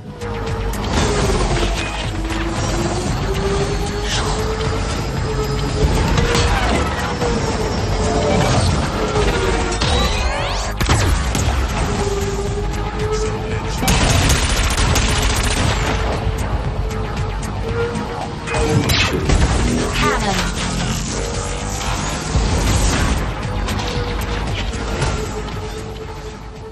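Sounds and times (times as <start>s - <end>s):
wavering tonal hum: 0.0s - 14.2s, 15.6s - 26.7s
roaring pass-bys in racing video game: 0.0s - 14.5s, 15.2s - 26.7s
futuristic racing video game whooshing engines: 0.0s - 26.7s.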